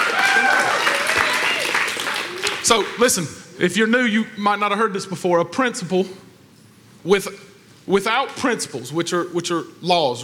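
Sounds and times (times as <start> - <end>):
audience applause and cheering: 0.0 - 3.0
speech: 2.7 - 6.3, 7.0 - 10.2.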